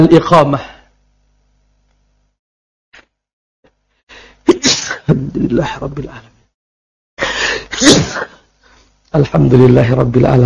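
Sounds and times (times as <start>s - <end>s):
speech: 0.0s - 0.7s, 5.1s - 6.3s, 7.8s - 8.3s, 9.1s - 10.4s
person sneezing: 4.4s - 5.2s, 7.3s - 8.4s.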